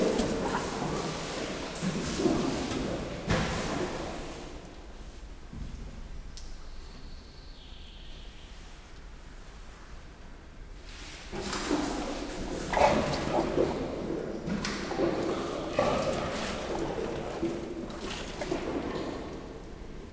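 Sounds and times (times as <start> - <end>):
Nile hippopotamus eating at zoo: 0.0 - 4.6, 11.3 - 20.1.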